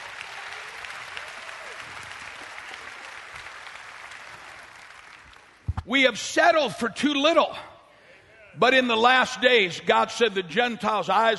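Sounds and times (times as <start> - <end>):
audience applause: 0.0 - 5.7
speech: 5.9 - 7.7, 8.6 - 11.3.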